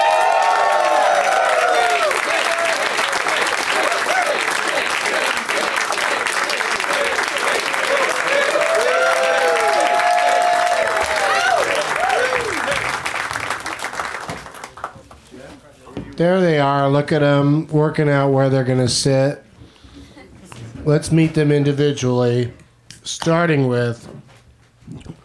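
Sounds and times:
audience applause for comedians: 0:00.0 - 0:15.2
speech: 0:16.2 - 0:19.4, 0:20.9 - 0:22.6, 0:23.2 - 0:24.1.

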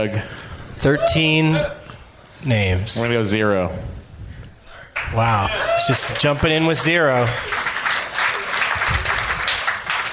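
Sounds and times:
speech: 0:00.0 - 0:01.8, 0:02.4 - 0:04.0, 0:05.1 - 0:07.7
audience applause: 0:05.0 - 0:10.1.

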